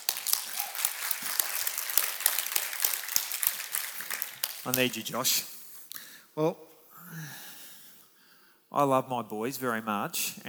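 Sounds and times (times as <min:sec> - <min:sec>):
audience applause: 0:00.0 - 0:05.1
speech: 0:04.6 - 0:05.6, 0:06.4 - 0:07.4, 0:08.7 - 0:10.4.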